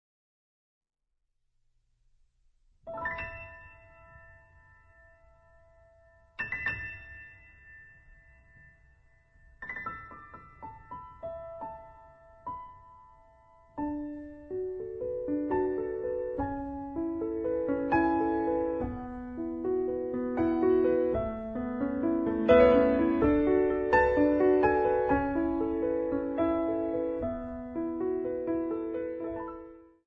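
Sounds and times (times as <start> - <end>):
solo piano: 2.8 - 30.0.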